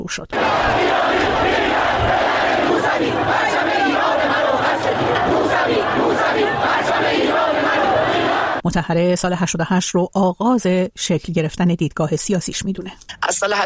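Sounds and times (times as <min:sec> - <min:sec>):
speech: 0:00.1 - 0:04.1, 0:08.6 - 0:13.6
protest crowd chanting: 0:00.3 - 0:08.6.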